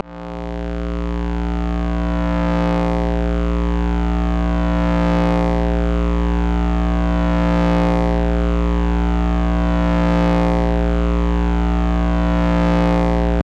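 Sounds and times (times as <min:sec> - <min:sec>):
long lightsaber buzz: 0:00.0 - 0:13.4.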